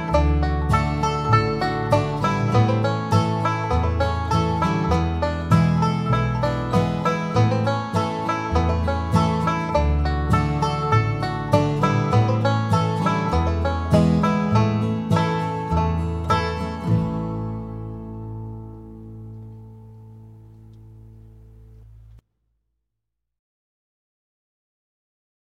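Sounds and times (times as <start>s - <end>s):
solo banjo at 100 bpm: 0.0s - 22.1s.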